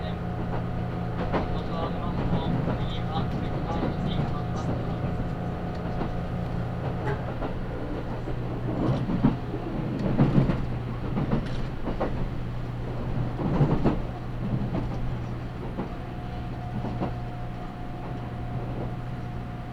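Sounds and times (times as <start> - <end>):
limited express train rumbling on the Nagasaki Main Line: 0.0 - 19.7
faint passenger voices: 1.2 - 5.8.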